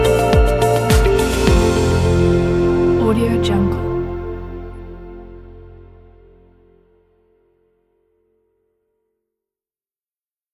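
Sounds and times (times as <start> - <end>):
corporate music: 0.0 - 7.0.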